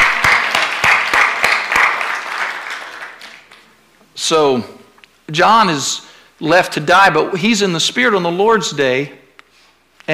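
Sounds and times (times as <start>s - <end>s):
audience applause: 0.0s - 3.7s
speech: 4.3s - 9.2s.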